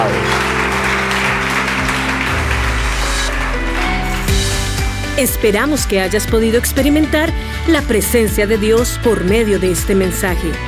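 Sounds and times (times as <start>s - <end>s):
audience applause: 0.0s - 5.1s
speech: 5.2s - 10.6s.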